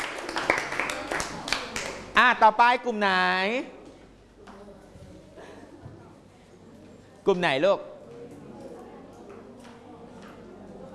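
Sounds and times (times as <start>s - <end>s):
classroom applause: 0.0s - 2.2s
speech: 2.2s - 3.8s, 7.2s - 7.9s.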